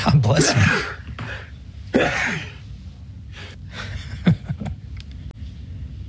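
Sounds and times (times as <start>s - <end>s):
quadruple sneeze: 0.3s - 2.6s.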